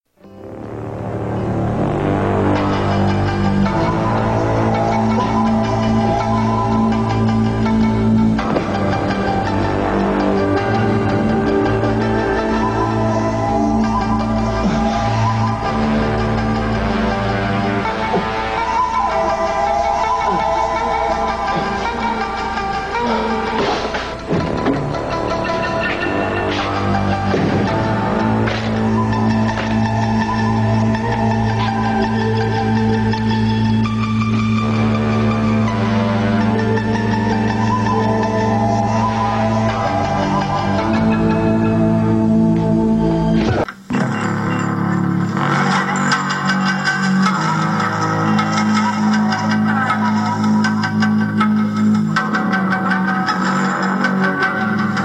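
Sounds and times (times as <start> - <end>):
Asian theme music: 0.2 - 55.0.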